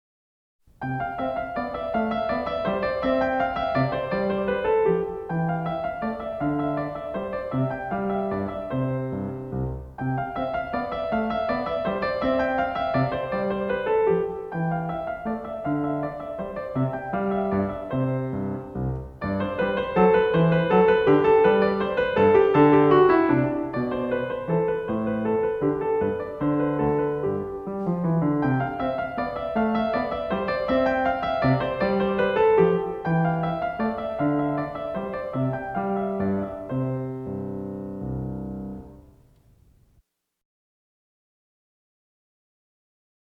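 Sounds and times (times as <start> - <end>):
minuet en rondeau: 0.8 - 39.5.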